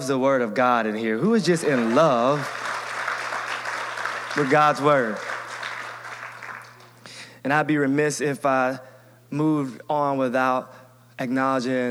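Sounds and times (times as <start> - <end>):
speech: 0.0 - 2.6, 4.4 - 5.3, 7.4 - 11.8
low electrical hum: 0.0 - 11.8
crowd applauding: 1.4 - 7.0.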